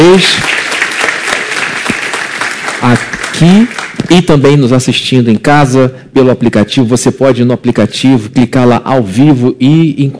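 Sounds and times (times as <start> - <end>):
applause for mothers: 0.0 - 4.5
speech: 0.1 - 0.6, 2.8 - 10.1.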